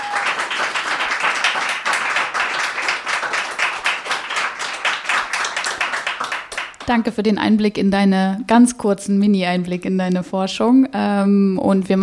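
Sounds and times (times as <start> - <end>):
audience applause: 0.0 - 6.9
speech: 6.9 - 12.0.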